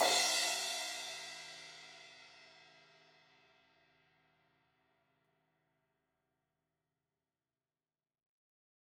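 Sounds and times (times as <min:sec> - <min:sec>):
16-inch crash cymbal hit on the edge: 0:00.0 - 0:00.9.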